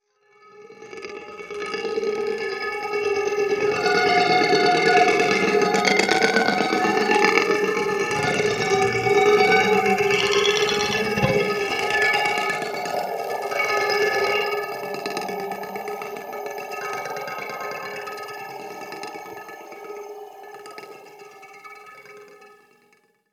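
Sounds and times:
drill guitar: 0:00.6 - 0:22.6.

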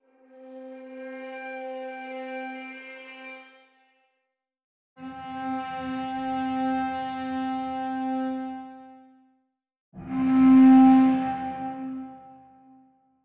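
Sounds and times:
strings: 0:00.1 - 0:04.0, 0:05.0 - 0:08.9, 0:10.0 - 0:12.6.

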